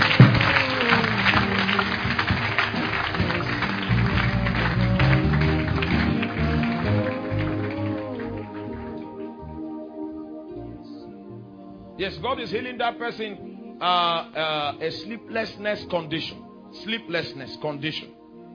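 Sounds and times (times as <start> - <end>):
audience clapping: 0.0 - 9.5
speech: 12.1 - 18.1.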